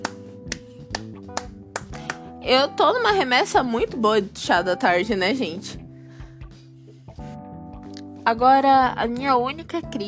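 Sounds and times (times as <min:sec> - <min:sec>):
hand claps: 0:00.0 - 0:02.3
soft sustained musical background: 0:00.0 - 0:10.0
speech: 0:02.4 - 0:05.8, 0:08.2 - 0:10.0.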